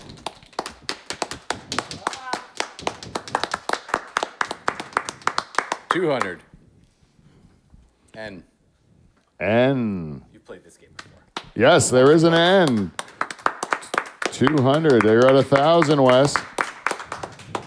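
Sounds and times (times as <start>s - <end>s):
people clapping: 0.0s - 6.4s, 10.8s - 17.6s
speech: 6.0s - 6.5s, 8.2s - 8.5s, 9.4s - 13.0s, 14.4s - 16.6s.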